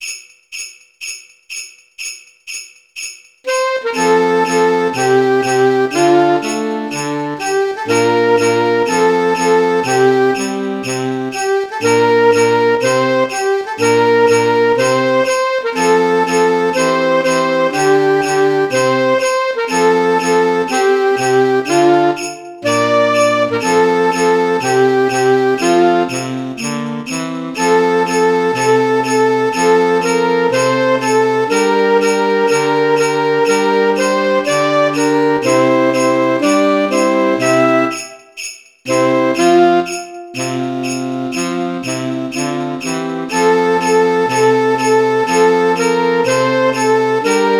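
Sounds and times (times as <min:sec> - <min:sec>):
saxophone playing in F major: 0:03.5 - 0:47.5.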